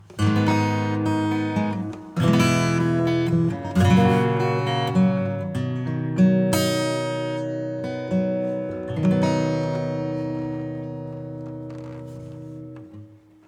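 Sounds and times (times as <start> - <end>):
acoustic music: 0.0 - 13.4.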